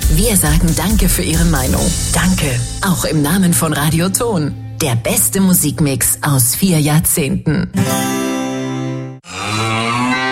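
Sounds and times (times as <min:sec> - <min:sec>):
speech: 0:00.2 - 0:08.3
mooing cow sound of a Müllermilch bottle in an advert: 0:09.3 - 0:10.3.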